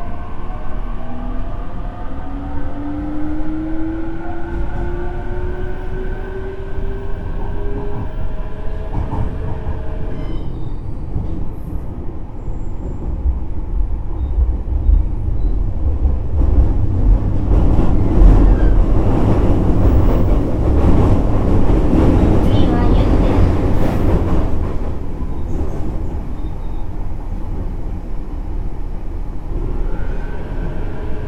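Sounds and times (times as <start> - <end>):
JR Kyushu 817 series train rumbling: 0.0 - 31.2.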